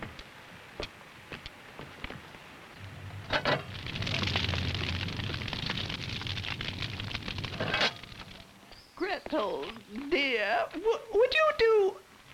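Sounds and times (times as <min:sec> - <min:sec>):
wood fire crackling in a bread oven: 0:00.0 - 0:10.9
roaring whoosh of flame in a bread oven: 0:01.9 - 0:08.7
speech: 0:09.4 - 0:11.9.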